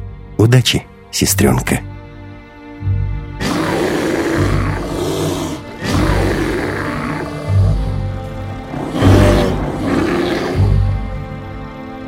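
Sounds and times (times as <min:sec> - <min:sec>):
speech: 0:00.4 - 0:02.0
deep rumbling menacing animal growl: 0:03.4 - 0:11.6.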